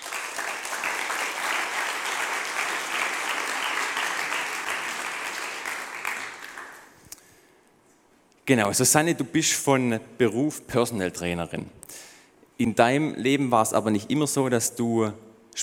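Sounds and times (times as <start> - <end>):
audience applause: 0.0 - 7.0
speech: 8.5 - 15.6.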